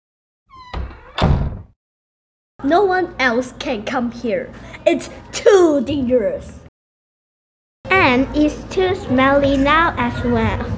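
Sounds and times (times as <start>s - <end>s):
mansion door squeak: 0.5s - 1.7s
speech: 2.6s - 6.6s, 8.1s - 10.7s.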